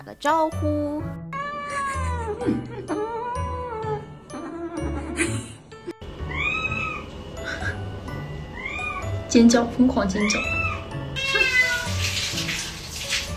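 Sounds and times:
speech: 0.1 - 1.2, 2.4 - 3.0, 9.3 - 10.6
cats meowing: 1.4 - 5.2, 6.2 - 7.8, 8.5 - 9.1, 10.2 - 12.0.

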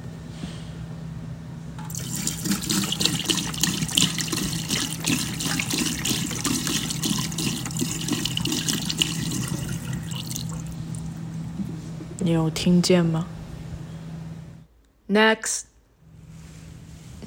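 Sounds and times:
low constant hum: 0.0 - 17.2
liquid glugging out of a milk carton: 1.8 - 11.2
speech: 12.3 - 13.4, 15.1 - 15.7.

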